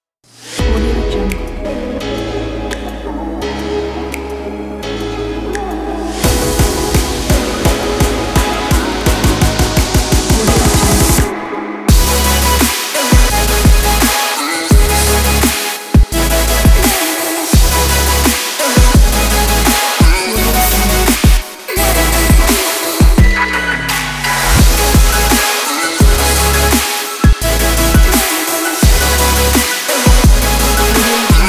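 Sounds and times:
future bass music: 0.4s - 31.4s.

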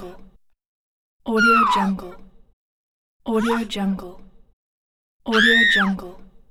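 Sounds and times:
woman screaming: 1.4s - 1.9s, 5.3s - 5.9s.

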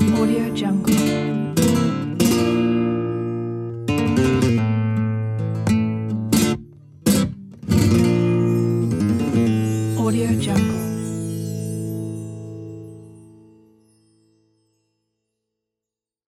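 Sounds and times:
flamenco music: 0.0s - 11.3s.

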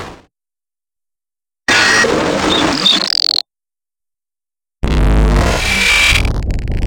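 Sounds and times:
glitch sounds: 1.7s - 3.4s, 4.8s - 6.8s.

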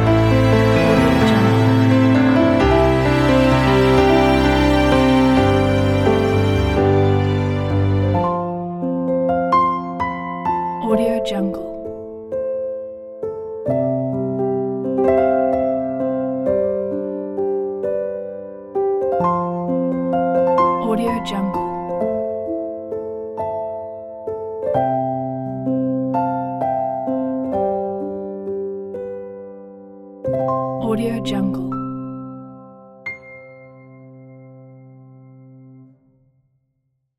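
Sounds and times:
strings playing: 0.0s - 8.9s
romantic piano: 0.0s - 36.0s.

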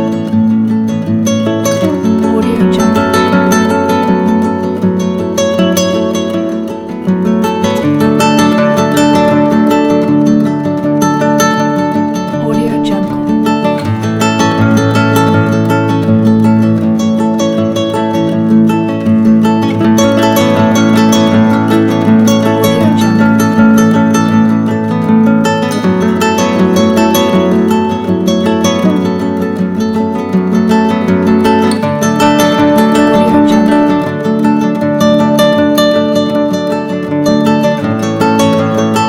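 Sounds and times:
ambient acoustic guitar: 0.0s - 39.0s.

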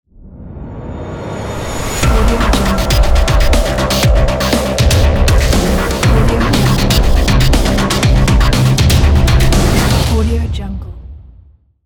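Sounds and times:
groovy tech logo jingle: 2.0s - 10.0s.

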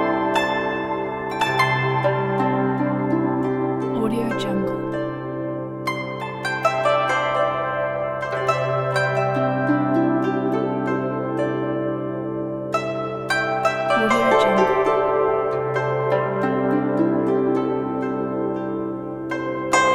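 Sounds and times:
relaxing Chinese meditation music: 0.0s - 19.9s.

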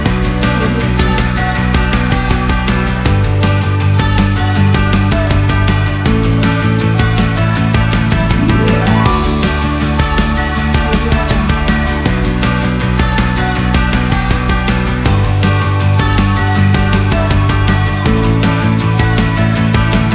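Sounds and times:
positive happy upbeat Christmas music kit: 0.0s - 20.1s.

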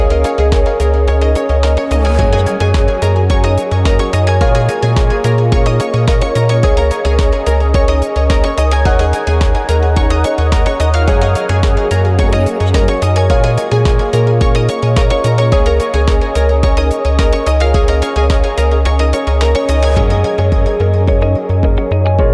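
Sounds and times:
corporate background music: 0.0s - 22.3s.

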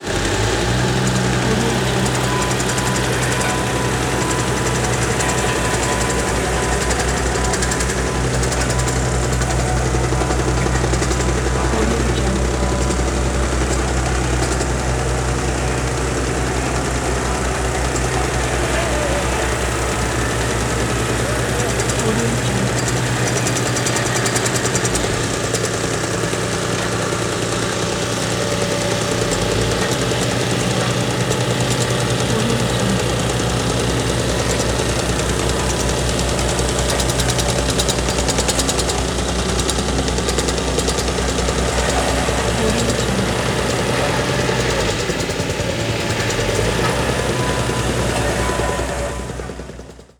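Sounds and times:
asphalt paving machine: 0.0s - 50.1s.

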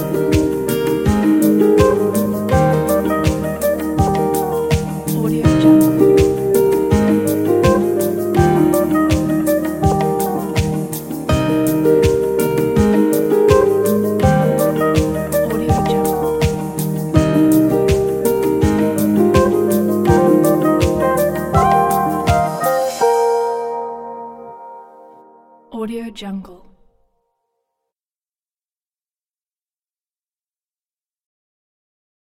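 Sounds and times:
acoustic ambient music: 0.0s - 25.8s.

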